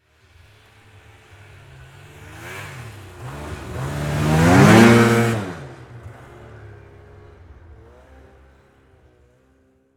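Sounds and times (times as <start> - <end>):
Yamaha Exciter 440 snowmobile passing fast: 0.2 - 9.8.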